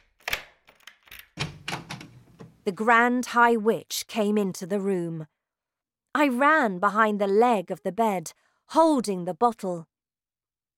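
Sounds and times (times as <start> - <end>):
key turning in lock: 0.1 - 2.2
door opening: 0.3 - 2.6
speech: 2.6 - 5.4, 6.2 - 9.9.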